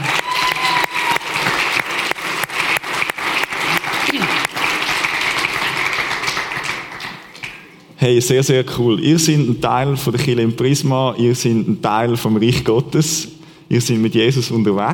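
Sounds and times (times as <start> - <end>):
audience applause: 0.0 - 7.7
speech: 8.0 - 14.9.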